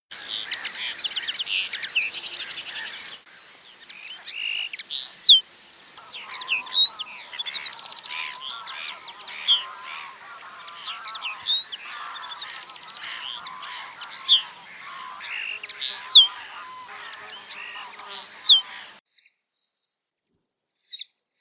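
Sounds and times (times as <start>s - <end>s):
common linnet singing in twittery phrases: 0.1s - 19.0s.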